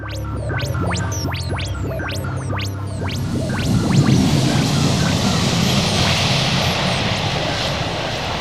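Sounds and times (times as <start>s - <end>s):
time machine sound effect mechanical ticking: 0.0s - 6.1s
time machine sound effect hum: 0.0s - 8.3s
time machine sound effect taking off with a roaring rush: 3.2s - 8.3s.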